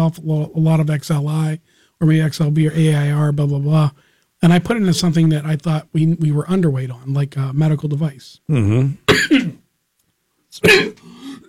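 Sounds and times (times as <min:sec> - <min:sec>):
speech: 0:00.0 - 0:09.6, 0:10.6 - 0:11.4
person coughing and clearing the throat: 0:08.5 - 0:09.6, 0:10.6 - 0:11.4.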